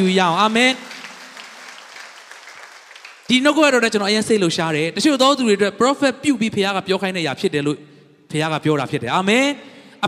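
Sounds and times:
speech: 0:00.0 - 0:00.9, 0:03.3 - 0:10.0
church congregation clapping hands during a Sunday sermon: 0:00.0 - 0:04.1.

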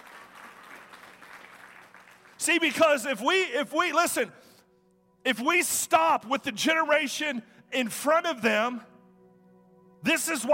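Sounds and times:
a few scattered audience claps: 0:00.0 - 0:02.8
speech: 0:02.4 - 0:04.5, 0:05.2 - 0:08.9, 0:10.0 - 0:10.5.

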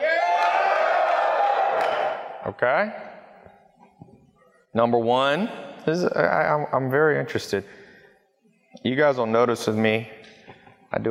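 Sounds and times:
crowd yelling to vote: 0:00.0 - 0:02.5
speech: 0:02.5 - 0:03.1, 0:04.7 - 0:07.8, 0:08.8 - 0:10.2.

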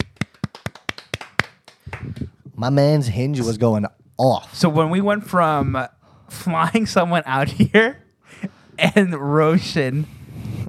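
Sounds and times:
round of applause: 0:00.0 - 0:02.4
speech: 0:02.6 - 0:08.0, 0:08.8 - 0:10.2.

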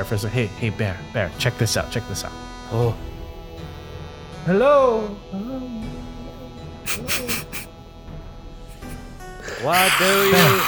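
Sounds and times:
speech: 0:00.0 - 0:03.1, 0:04.4 - 0:06.0, 0:06.9 - 0:07.5, 0:09.6 - 0:10.6
loud sudden sharp hissing from deep in a cavern: 0:06.9 - 0:07.7, 0:08.7 - 0:10.6.

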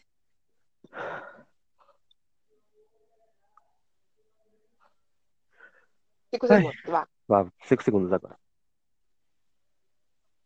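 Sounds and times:
people breathing in and out during a short relaxation exercise: 0:00.8 - 0:02.2, 0:05.3 - 0:06.2
speech: 0:06.3 - 0:08.4.

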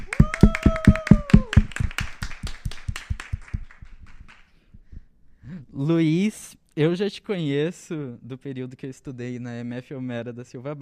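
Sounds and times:
held voiced cheer: 0:00.0 - 0:01.9
rhythmic clapping: 0:00.0 - 0:05.2
speech: 0:05.8 - 0:10.8.

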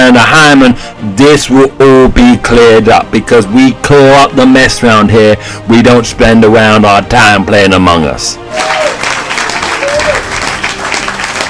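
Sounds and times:
speech: 0:00.1 - 0:08.9
applause: 0:08.5 - 0:11.4.

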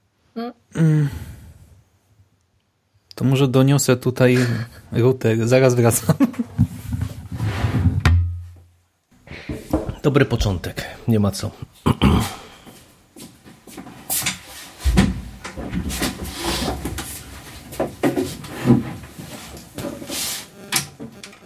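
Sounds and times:
speech: 0:00.4 - 0:01.2, 0:03.2 - 0:06.6, 0:10.0 - 0:12.4
scraping and shuffling: 0:06.3 - 0:08.6, 0:12.2 - 0:21.4
bumps and rubbing: 0:06.5 - 0:08.1, 0:14.6 - 0:21.4.

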